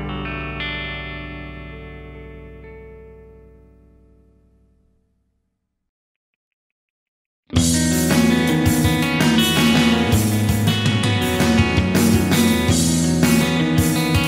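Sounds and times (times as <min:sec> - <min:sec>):
math rock music: 0:00.0 - 0:04.2, 0:07.5 - 0:14.2.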